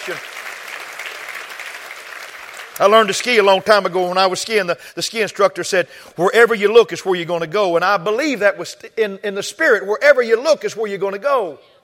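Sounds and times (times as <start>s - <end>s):
speech: 0.0s - 0.4s, 2.8s - 11.8s
audience clapping: 0.0s - 3.7s.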